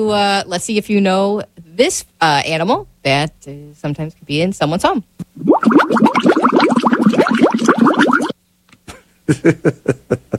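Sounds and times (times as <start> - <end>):
speech: 0.0 - 8.0, 9.3 - 10.3
fish tank aerator bubbling water: 5.4 - 8.4
laughter: 8.9 - 10.3.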